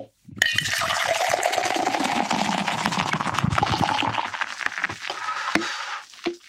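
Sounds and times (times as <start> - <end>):
beer pouring from a can into a tumbler: 0.4 - 5.1.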